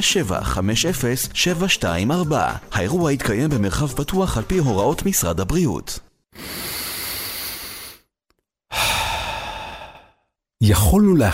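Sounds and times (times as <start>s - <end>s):
speech: 0.0s - 6.6s, 10.6s - 11.3s
full airy exhale: 6.3s - 8.1s, 8.7s - 10.3s
long deep breath drawn in: 6.4s - 8.1s, 8.7s - 10.3s.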